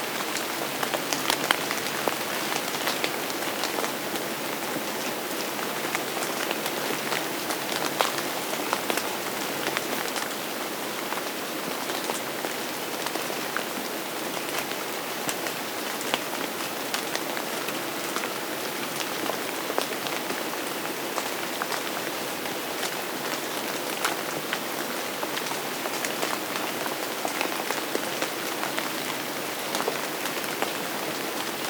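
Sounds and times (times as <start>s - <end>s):
steady rainfall: 0.0s - 31.6s.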